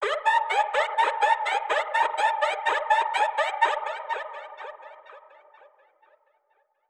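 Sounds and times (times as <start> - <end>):
modulation-processed alarm siren samples: 0.0 - 5.5.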